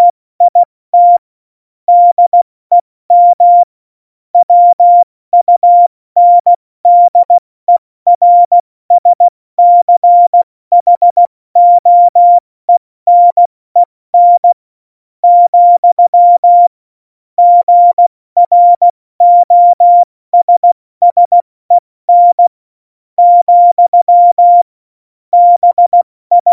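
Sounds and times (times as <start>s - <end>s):
CW Morse code beeps: 0.0s - 1.2s, 1.9s - 3.7s, 4.4s - 12.4s, 13.1s - 14.6s, 15.2s - 16.7s, 17.4s - 21.4s, 22.1s - 22.5s, 23.2s - 24.7s, 25.4s - 26.5s.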